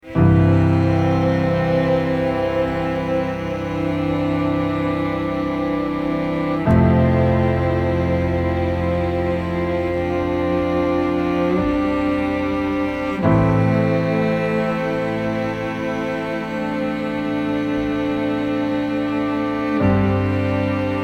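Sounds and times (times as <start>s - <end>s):
piano: 0.0s - 21.0s
strings: 0.0s - 21.0s.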